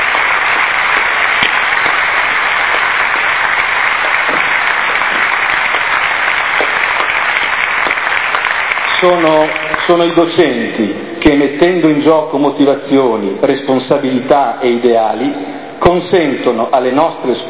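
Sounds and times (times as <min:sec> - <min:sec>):
audience applause in a theatre: 0:00.0 - 0:10.4
speech: 0:09.0 - 0:17.4.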